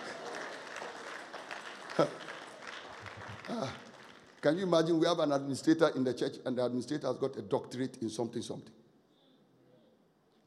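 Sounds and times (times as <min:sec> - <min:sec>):
audience clapping: 0:00.0 - 0:05.2
speech: 0:02.0 - 0:02.2, 0:03.5 - 0:03.8, 0:04.4 - 0:08.8.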